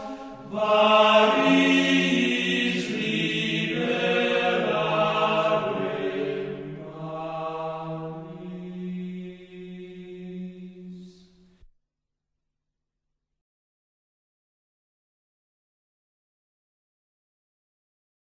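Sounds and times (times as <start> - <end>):
voices singing parallel organum: 0.0 - 11.2.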